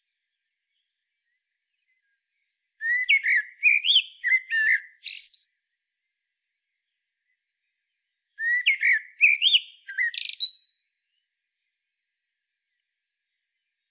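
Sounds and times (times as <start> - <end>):
common blackbird singing: 0.0 - 5.6, 7.0 - 11.2.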